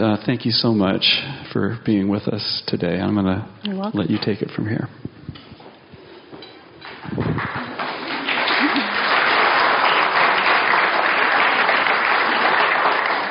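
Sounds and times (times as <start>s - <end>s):
speech: 0.0s - 5.1s
audience clapping: 6.8s - 13.2s.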